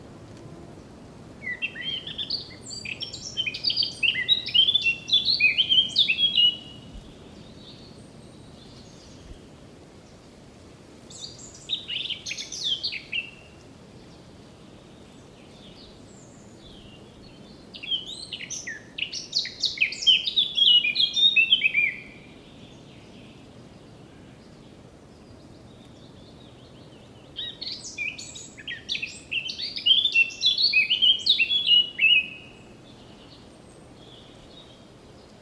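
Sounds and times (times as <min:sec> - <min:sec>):
Eurasian blackcap singing: 0:01.4 - 0:06.9, 0:17.7 - 0:22.2, 0:26.5 - 0:33.4.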